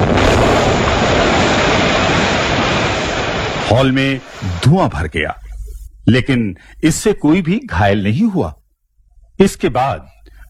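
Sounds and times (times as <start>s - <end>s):
loud bomb explosion: 0.0s - 5.0s
speech: 3.7s - 5.4s, 6.1s - 8.6s, 9.4s - 10.1s.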